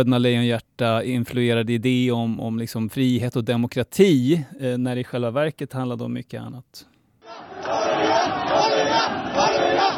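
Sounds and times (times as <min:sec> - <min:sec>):
speech: 0:00.0 - 0:09.9
large protest crowd chanting slogans: 0:07.2 - 0:09.9.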